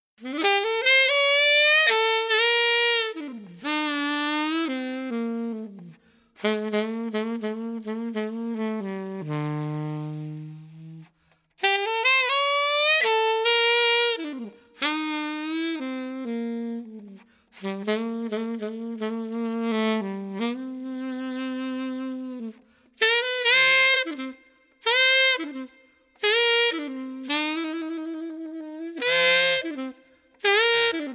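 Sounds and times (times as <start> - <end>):
sleazy saxophone: 0.2 - 31.1.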